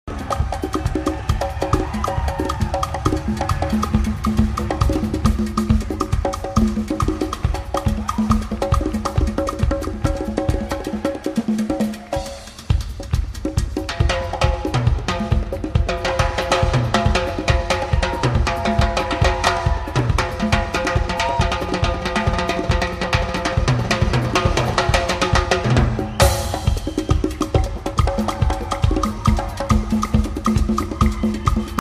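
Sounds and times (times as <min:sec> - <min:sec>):
percussion jam: 0:00.0 - 0:31.7.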